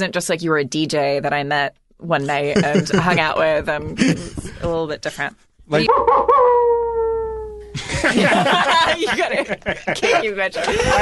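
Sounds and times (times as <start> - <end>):
speech: 0.0 - 6.8, 7.8 - 11.0
people chuckling and laughing: 2.6 - 3.3, 7.7 - 11.0
dog howling: 5.9 - 7.6.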